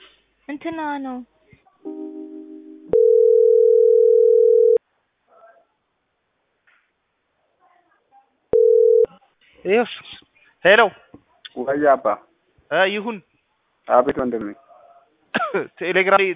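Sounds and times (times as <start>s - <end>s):
speech: 0.5s - 1.3s, 9.7s - 11.0s, 11.6s - 13.3s, 13.9s - 14.6s, 15.5s - 16.3s
telephone dial tone while a call connects: 2.9s - 4.8s, 8.6s - 9.1s.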